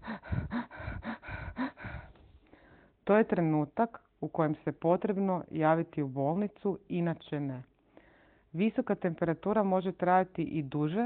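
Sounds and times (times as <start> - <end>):
voice imitating rapid shallow breathing of tachypnea: 0.0 - 3.0
speech: 3.1 - 7.7, 8.5 - 11.0.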